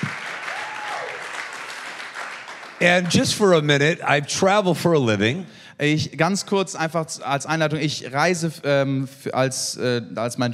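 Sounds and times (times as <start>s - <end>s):
audience applause for a worship band at a bilingual church gathering: 0.0s - 3.7s
speech: 2.8s - 10.5s.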